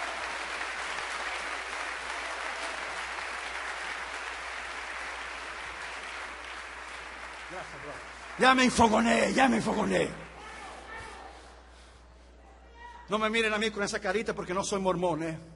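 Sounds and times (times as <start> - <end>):
applause: 0.0 - 10.4
speech: 7.6 - 10.2, 13.1 - 15.5.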